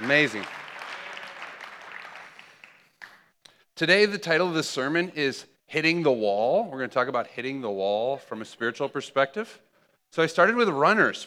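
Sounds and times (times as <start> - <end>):
audience applause: 0.0 - 3.3
speech: 0.1 - 0.6, 3.8 - 11.2.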